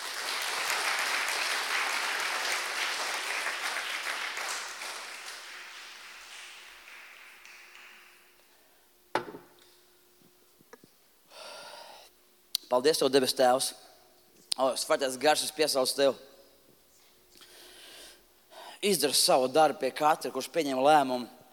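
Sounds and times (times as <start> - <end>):
audience applause: 0.0 - 8.4
speech: 12.7 - 13.8, 14.6 - 16.3, 18.8 - 21.4.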